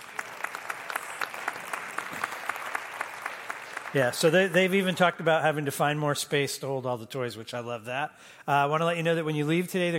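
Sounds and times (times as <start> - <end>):
audience applause: 0.0 - 5.3
speech: 3.9 - 9.9.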